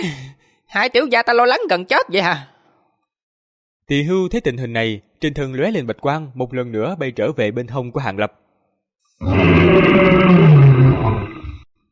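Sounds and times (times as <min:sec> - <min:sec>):
speech: 0:00.0 - 0:02.5, 0:03.9 - 0:08.4, 0:09.2 - 0:11.4
giant sand beast roaring: 0:09.2 - 0:11.7.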